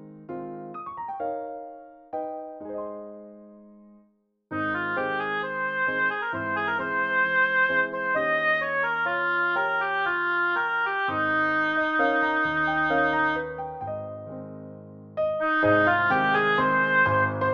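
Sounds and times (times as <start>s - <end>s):
oboe piece: 4.5s - 14.0s, 15.3s - 17.5s.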